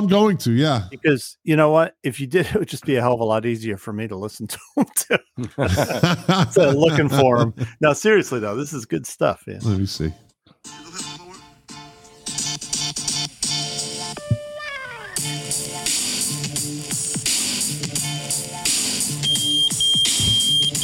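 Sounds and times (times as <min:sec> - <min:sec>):
speech: 0:00.0 - 0:10.8
laughter: 0:04.5 - 0:07.8
pager beeping: 0:19.2 - 0:20.8.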